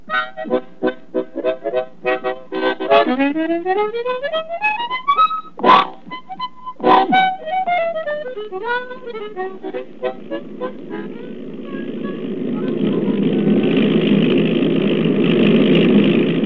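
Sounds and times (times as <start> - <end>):
airplane engine in flight: 0.0 - 16.4.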